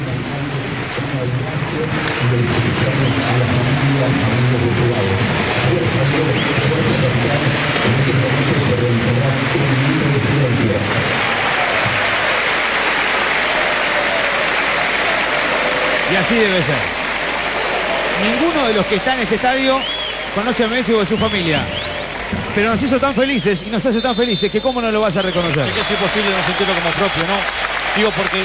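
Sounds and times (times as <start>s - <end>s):
stadium crowd applauding in tribute: 0.0s - 28.4s
speech: 1.2s - 3.4s, 16.2s - 16.9s, 18.2s - 28.4s.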